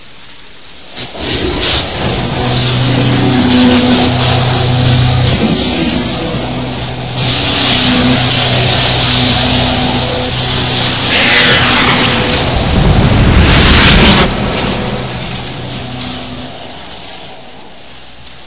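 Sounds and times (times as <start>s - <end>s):
spark: 0.0s - 18.4s.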